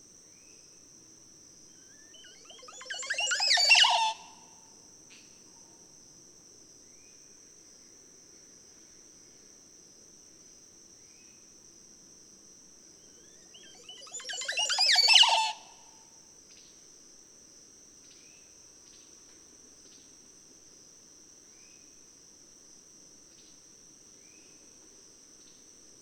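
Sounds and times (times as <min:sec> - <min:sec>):
Montezuma oropendola calling: 0:02.1 - 0:04.3, 0:13.2 - 0:15.7.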